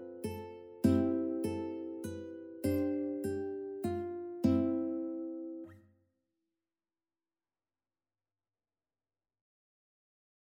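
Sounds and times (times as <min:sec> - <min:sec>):
ukulele carol: 0:00.0 - 0:05.6.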